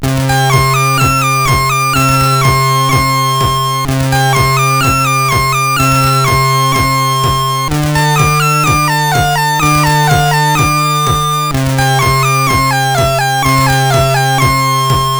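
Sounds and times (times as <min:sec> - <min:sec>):
SID CSG8580R5 chip music: 0:00.0 - 0:15.1.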